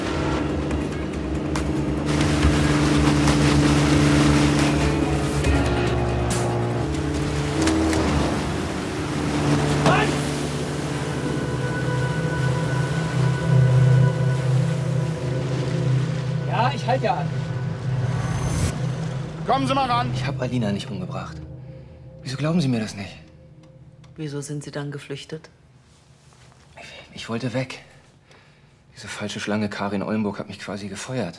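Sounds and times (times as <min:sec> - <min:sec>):
water rushing and splashing: 0:00.0 - 0:23.0
motorboat engine droning on water: 0:00.0 - 0:24.3
speech: 0:19.6 - 0:21.5, 0:22.2 - 0:23.2, 0:24.2 - 0:25.6, 0:27.1 - 0:27.9, 0:29.0 - 0:31.3.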